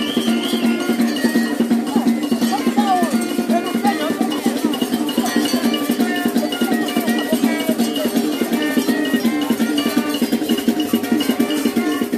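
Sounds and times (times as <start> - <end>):
maracatu percussion music performance: 0.0 - 12.1.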